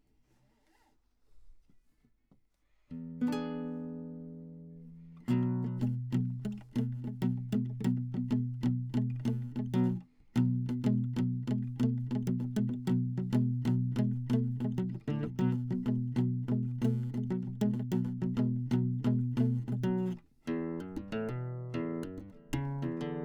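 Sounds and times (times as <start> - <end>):
classical guitar: 2.9 - 23.2.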